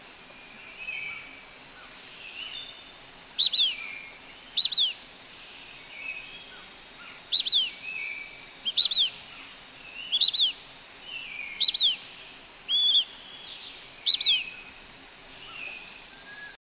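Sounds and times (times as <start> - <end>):
Blackish pewee calling: 3.3 - 5.1, 7.0 - 10.7, 11.3 - 13.2, 13.8 - 14.8.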